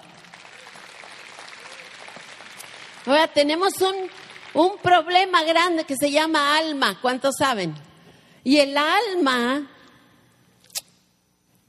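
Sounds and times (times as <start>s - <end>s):
audience applause: 0.0s - 3.2s, 3.8s - 4.7s
speech: 3.0s - 9.7s.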